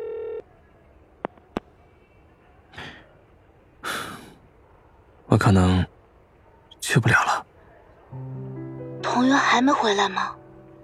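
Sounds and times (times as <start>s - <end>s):
steady telephone tone: 0.0s - 0.4s
speech: 5.3s - 5.9s, 6.9s - 7.5s, 9.2s - 10.4s.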